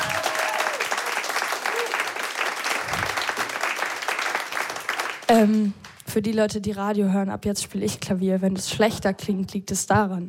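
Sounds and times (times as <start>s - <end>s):
audience applause: 0.0s - 5.3s
speech: 5.3s - 10.2s.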